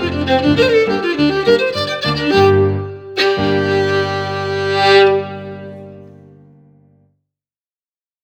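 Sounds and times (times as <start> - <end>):
fiddle: 0.0 - 6.3
piano: 0.0 - 7.2.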